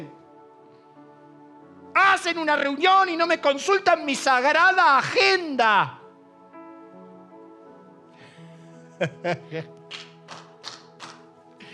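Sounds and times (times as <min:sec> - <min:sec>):
speech: 0:02.2 - 0:06.0, 0:09.0 - 0:09.8
laughter: 0:09.0 - 0:09.8
person clapping: 0:09.8 - 0:11.3.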